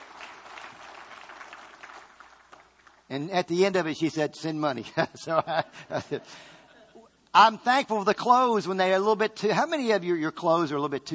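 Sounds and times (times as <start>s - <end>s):
congregation applauding at a church service: 0.0s - 3.1s
speech: 3.1s - 6.6s, 7.4s - 11.1s.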